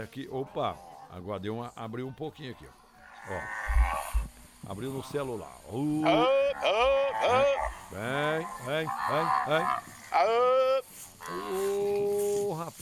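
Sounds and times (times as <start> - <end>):
speech: 0.0 - 4.1, 4.7 - 10.7, 11.3 - 11.8
herd of cattle mooing: 0.4 - 1.3, 3.0 - 12.8.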